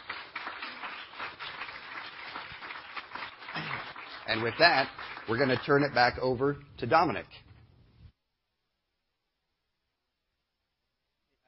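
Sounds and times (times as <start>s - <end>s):
audience applause: 0.0s - 6.6s
speech: 4.3s - 7.4s.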